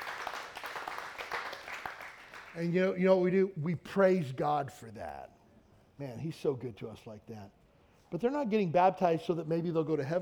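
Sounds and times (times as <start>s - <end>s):
audience clapping: 0.0s - 2.7s
speech: 2.6s - 5.4s, 6.0s - 10.2s.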